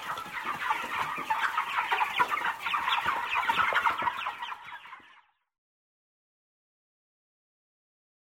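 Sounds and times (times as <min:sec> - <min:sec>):
birds: 0:00.0 - 0:05.6.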